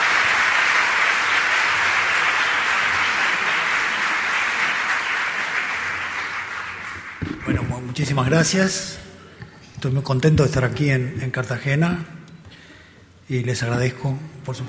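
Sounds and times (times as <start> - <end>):
crowd welcome applause: 0.0 - 7.9
speech: 8.0 - 9.0, 9.8 - 12.2, 13.3 - 14.6.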